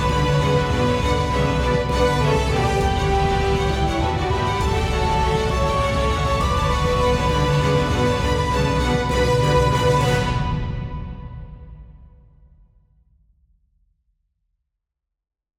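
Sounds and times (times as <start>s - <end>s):
heroic music: 0.0s - 12.0s.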